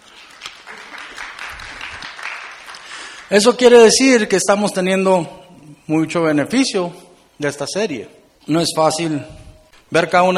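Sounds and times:
audience applause: 0:00.0 - 0:03.3
speech: 0:03.3 - 0:10.3.

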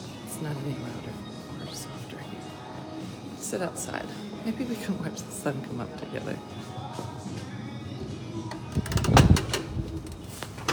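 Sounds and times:
speech: 0:00.4 - 0:02.6, 0:03.5 - 0:07.5
door scraping and rattling as it is forced open: 0:08.6 - 0:10.7
dull knocks and clicks: 0:08.7 - 0:10.1.

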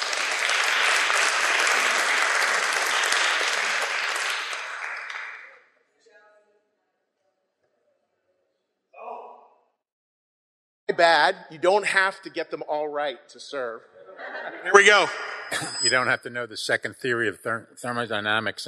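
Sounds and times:
audience applause: 0:00.0 - 0:05.5
speech: 0:11.0 - 0:18.6
laughter: 0:14.0 - 0:16.4.

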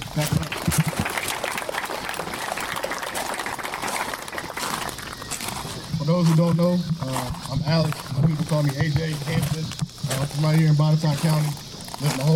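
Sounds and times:
campers applauding: 0:00.0 - 0:05.9
speech: 0:00.2 - 0:00.4, 0:06.2 - 0:12.3.

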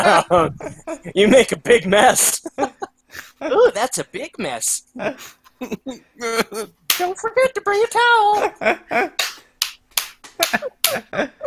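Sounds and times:
laughter: 0:00.0 - 0:01.5, 0:02.3 - 0:03.7, 0:08.3 - 0:09.2, 0:10.3 - 0:11.4
speech: 0:00.0 - 0:09.3, 0:10.4 - 0:11.4
hand clapping: 0:06.9 - 0:07.1, 0:09.2 - 0:11.0.

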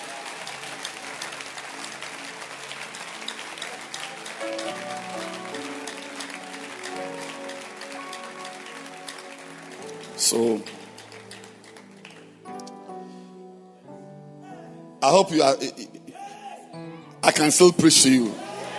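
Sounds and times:
audience clapping at a church service: 0:00.0 - 0:12.7
speech: 0:10.3 - 0:10.8, 0:15.1 - 0:15.9, 0:17.4 - 0:18.4.

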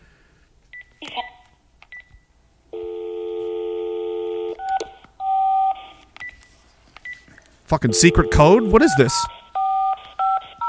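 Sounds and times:
telephone keypad dialing tones: 0:04.2 - 0:06.4, 0:07.9 - 0:10.6
speech: 0:07.7 - 0:09.4.

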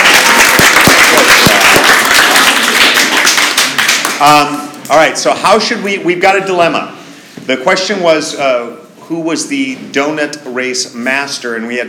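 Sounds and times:
studio audience applauding themselves: 0:00.0 - 0:04.6
speech: 0:04.2 - 0:11.8.

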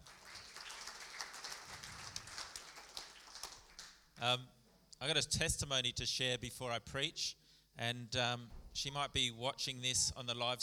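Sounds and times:
crowd clapping: 0:00.0 - 0:04.1
speech: 0:04.2 - 0:10.6.

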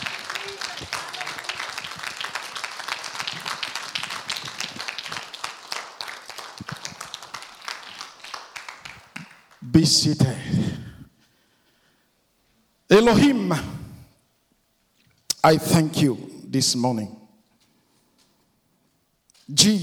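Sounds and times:
audience clapping: 0:00.0 - 0:10.0
speech: 0:09.8 - 0:10.8, 0:13.0 - 0:13.7, 0:15.4 - 0:17.2, 0:19.6 - 0:19.8.

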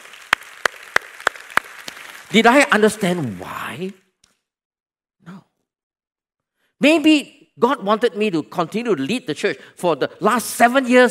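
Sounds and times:
audience clapping in unison: 0:00.0 - 0:04.1
speech: 0:02.3 - 0:04.0, 0:06.8 - 0:11.0.

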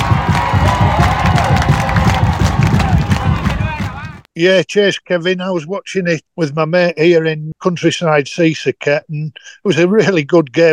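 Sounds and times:
football crowd cheering and celebrating: 0:00.0 - 0:04.3
speech: 0:04.4 - 0:10.7.

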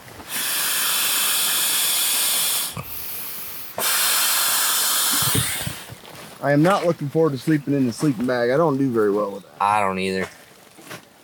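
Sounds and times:
blowing air into a sleeping pad: 0:00.0 - 0:06.0
speech: 0:06.4 - 0:10.4.

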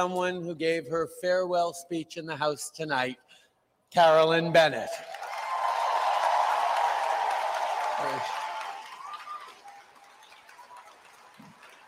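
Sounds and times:
speech: 0:00.0 - 0:05.2, 0:08.0 - 0:08.4
large crowd applauding: 0:05.0 - 0:11.8.

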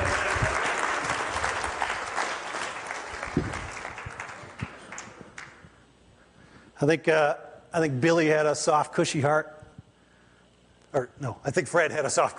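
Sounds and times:
audience applause: 0:00.0 - 0:05.6
speech: 0:06.8 - 0:09.6, 0:10.9 - 0:12.3.

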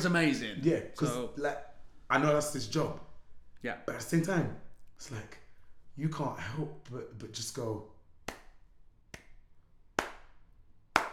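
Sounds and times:
speech: 0:00.0 - 0:05.4, 0:06.0 - 0:07.9
person clapping: 0:08.3 - 0:09.4, 0:10.0 - 0:10.4, 0:11.0 - 0:11.1.

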